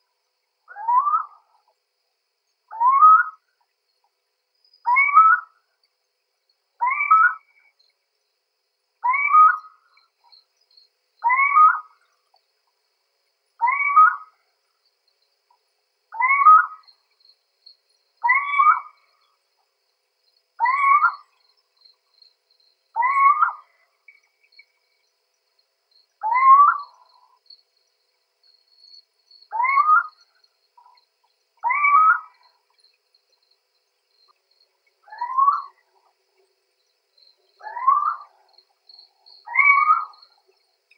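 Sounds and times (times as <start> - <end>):
little owl Athene noctua calling: 0.7 - 1.5, 2.7 - 3.4, 4.9 - 5.5, 6.8 - 7.5, 9.0 - 9.7, 11.2 - 12.0, 13.6 - 14.3, 16.2 - 16.9, 18.2 - 19.0, 20.6 - 21.3, 23.0 - 23.8, 26.2 - 27.4, 29.5 - 30.2, 31.6 - 32.6, 35.0 - 36.1, 37.6 - 38.5, 39.4 - 40.3.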